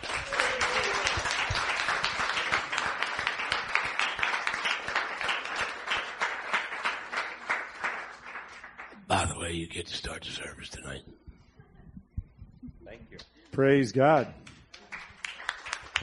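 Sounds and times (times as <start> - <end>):
audience cheering: 0.0 - 3.9
audience applauding: 0.0 - 9.6, 14.5 - 16.0
speech: 9.4 - 11.1, 13.6 - 14.4.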